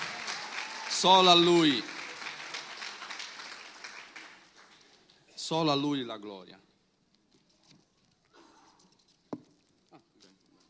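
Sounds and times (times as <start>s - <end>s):
audience applause: 0.0s - 5.2s
speech: 1.0s - 1.9s, 5.5s - 6.7s.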